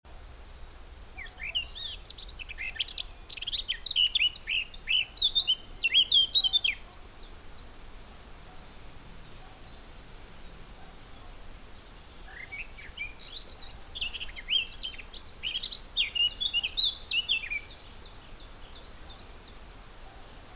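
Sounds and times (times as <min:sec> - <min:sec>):
Eurasian blackcap warbling song: 0:00.4 - 0:07.7, 0:08.4 - 0:19.6.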